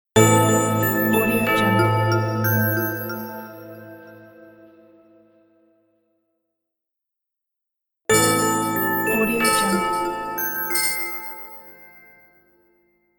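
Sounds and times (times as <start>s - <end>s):
Christmas logo jingle: 0.2s - 5.3s, 8.1s - 12.7s.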